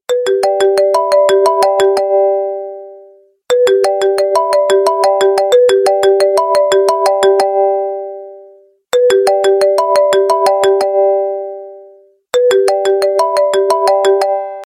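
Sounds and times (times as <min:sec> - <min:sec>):
phone ringtone: 0:00.1 - 0:14.7.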